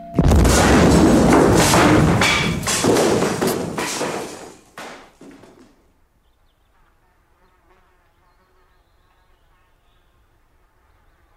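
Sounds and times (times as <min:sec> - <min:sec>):
bomb explosion: 0:00.1 - 0:04.6.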